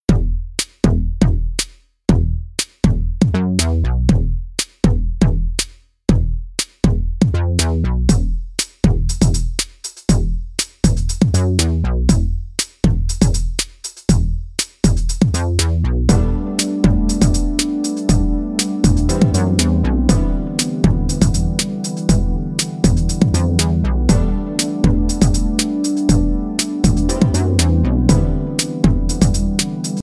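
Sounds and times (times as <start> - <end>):
bass beat: 0.0 - 30.0.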